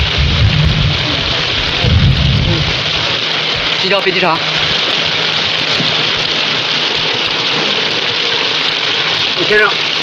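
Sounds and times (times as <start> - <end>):
heavy wind: 0.0 - 3.7
heavy rain: 0.0 - 10.0
speech: 3.9 - 4.7, 9.5 - 9.9.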